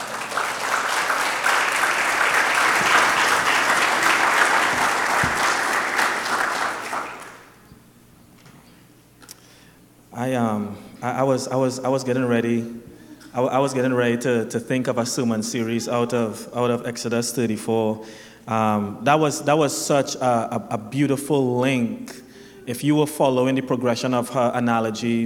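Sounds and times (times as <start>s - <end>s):
audience applause: 0.0s - 7.6s
speech: 10.5s - 25.2s.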